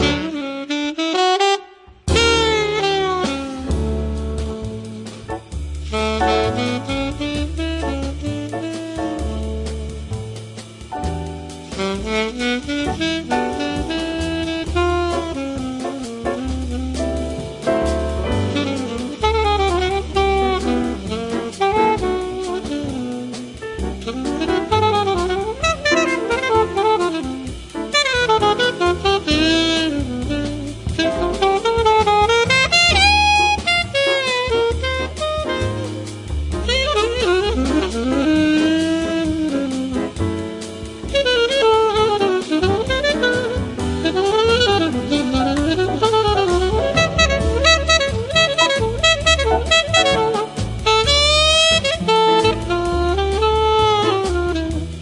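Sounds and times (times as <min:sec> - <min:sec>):
swing samba music: 0:00.0 - 0:55.0.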